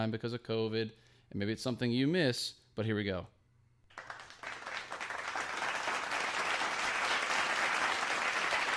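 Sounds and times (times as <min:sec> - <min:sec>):
speech: 0:00.0 - 0:03.4
applause: 0:03.9 - 0:08.7.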